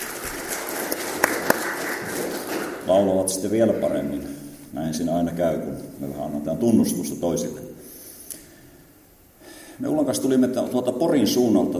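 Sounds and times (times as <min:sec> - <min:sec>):
audience applauding: 0:00.0 - 0:02.9
speech: 0:02.9 - 0:07.7, 0:09.8 - 0:11.7.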